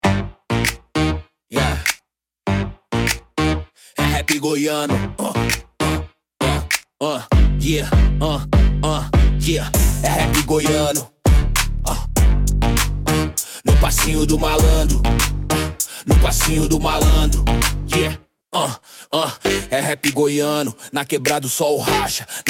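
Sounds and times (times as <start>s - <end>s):
rap goiano: 0.0s - 2.0s, 3.0s - 18.2s, 19.4s - 22.4s.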